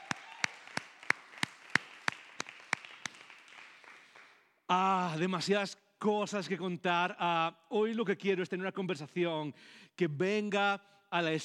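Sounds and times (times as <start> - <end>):
rhythmic clapping: 0.0 - 4.6
speech: 4.7 - 11.4.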